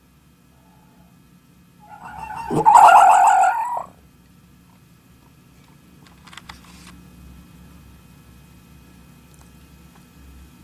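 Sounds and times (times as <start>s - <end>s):
red fox giving a wavering whining vocal sound: 1.8s - 3.9s
faint clatter: 5.6s - 7.0s.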